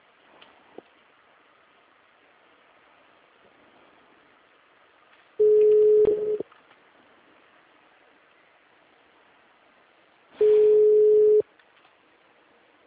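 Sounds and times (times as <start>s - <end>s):
faint telephone line hiss: 0.0s - 12.8s
telephone ringing tone heard in the earpiece: 5.4s - 6.4s, 10.4s - 11.4s.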